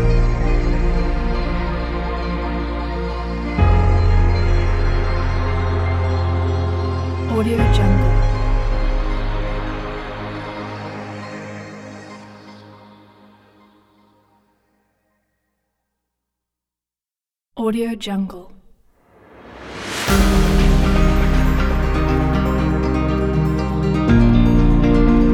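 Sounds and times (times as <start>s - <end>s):
cinematic rock music: 0.0s - 11.3s, 19.4s - 25.3s.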